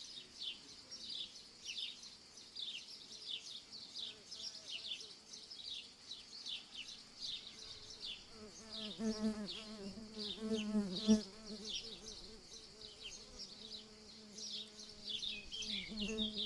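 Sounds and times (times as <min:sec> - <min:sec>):
cicadas in summer fields: 0:00.0 - 0:16.4
insects in summer fields: 0:00.0 - 0:16.4
little birds in summer fields in the morning: 0:00.0 - 0:16.4
bees in summer fields: 0:08.3 - 0:16.4.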